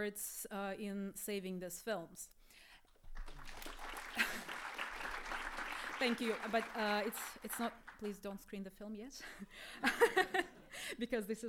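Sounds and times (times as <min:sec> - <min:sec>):
speech: 0:00.0 - 0:02.7, 0:06.0 - 0:11.4
audience applause: 0:03.0 - 0:08.2.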